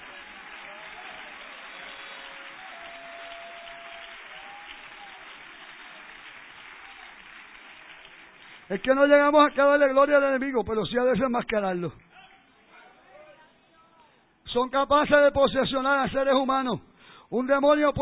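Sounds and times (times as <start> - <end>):
audience applause: 0.0 - 8.8
speech: 8.7 - 12.0, 14.5 - 18.0.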